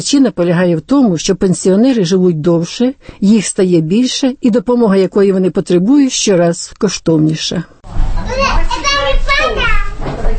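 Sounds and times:
speech: 0.0 - 9.6
children playing inside a small building in south-east London: 8.2 - 10.2.

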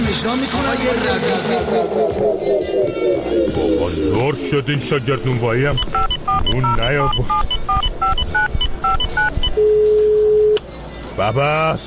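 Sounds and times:
speech: 0.1 - 7.8, 11.2 - 11.8
telephone number being dialed, keypad tones: 5.7 - 10.6.

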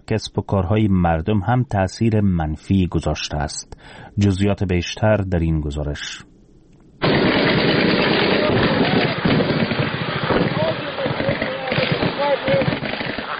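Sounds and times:
speech: 0.1 - 6.3
light and heavy weapons gunfire: 7.0 - 13.3.

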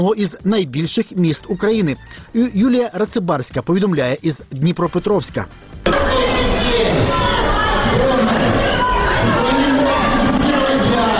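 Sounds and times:
speech: 0.0 - 6.0
crowd in a large hall shouting and chanting: 5.8 - 11.1
overlapping chatter: 5.8 - 11.1.

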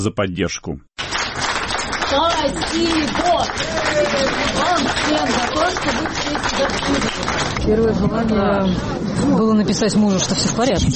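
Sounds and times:
speech: 0.0 - 1.5, 2.1 - 10.9
crowd applauding outside a courthouse: 1.0 - 7.8.

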